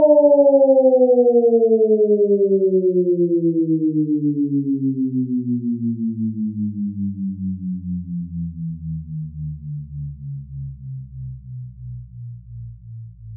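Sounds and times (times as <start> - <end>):
warning siren: 0.0 - 6.8.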